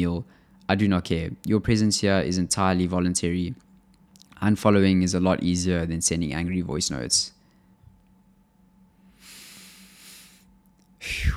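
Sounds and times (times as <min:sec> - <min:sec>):
speech: 0:00.0 - 0:03.7, 0:04.4 - 0:07.4, 0:11.0 - 0:11.3
person taking a deep breath: 0:09.2 - 0:10.4, 0:11.0 - 0:11.3.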